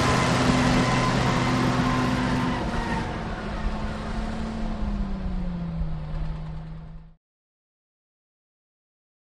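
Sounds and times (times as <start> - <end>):
bulldozer starting up, passing and switching off: 0.0 - 7.2.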